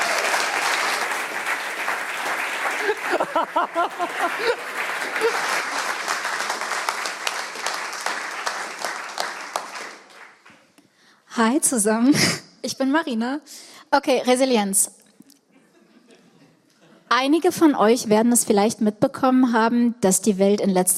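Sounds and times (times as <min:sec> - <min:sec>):
crowd applauding loudly: 0:00.0 - 0:10.8
laughter: 0:02.5 - 0:06.1, 0:15.6 - 0:17.1
speech: 0:03.4 - 0:05.8, 0:11.4 - 0:15.0, 0:17.2 - 0:20.9.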